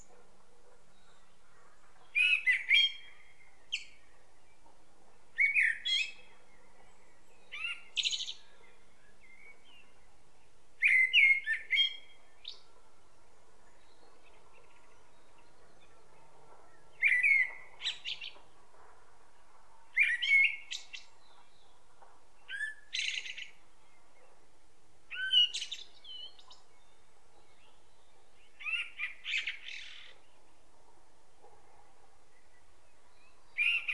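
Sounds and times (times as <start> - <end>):
common blackbird singing: 0.9 - 4.6, 5.4 - 10.1, 10.8 - 12.7, 13.7 - 18.5, 19.9 - 21.8, 22.4 - 24.4, 25.1 - 30.5, 32.3 - 33.9.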